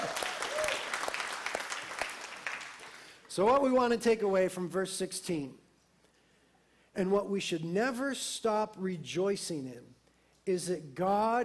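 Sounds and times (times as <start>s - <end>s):
round of applause: 0.0s - 3.6s
speech: 3.4s - 5.6s, 7.0s - 11.4s.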